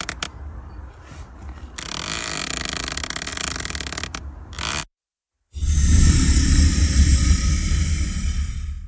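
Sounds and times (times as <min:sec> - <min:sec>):
tree branch creaking: 0:01.4 - 0:04.9
monster growling: 0:05.5 - 0:08.8.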